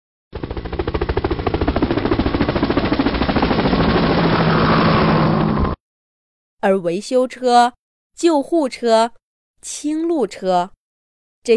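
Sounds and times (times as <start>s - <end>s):
rescue helicopters flying: 0.4s - 5.8s
speech: 6.6s - 10.8s.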